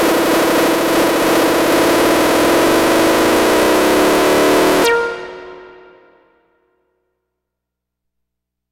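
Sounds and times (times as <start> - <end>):
synth sequence: 0.0 - 6.5.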